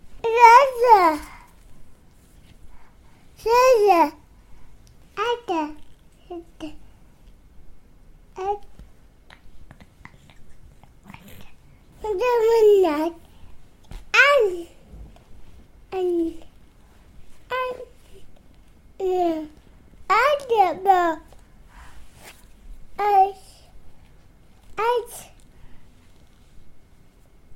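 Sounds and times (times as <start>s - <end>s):
baby talk: 0.2s - 1.5s, 3.4s - 4.2s, 5.2s - 6.8s, 8.4s - 8.7s, 11.1s - 13.2s, 14.1s - 14.8s, 15.9s - 16.5s, 17.5s - 18.0s, 19.0s - 21.3s, 23.0s - 23.7s, 24.8s - 25.4s.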